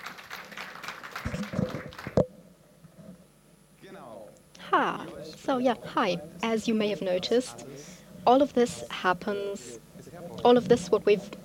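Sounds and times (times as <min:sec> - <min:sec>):
applause: 0:00.0 - 0:02.2
speech: 0:04.8 - 0:09.8, 0:10.4 - 0:11.4.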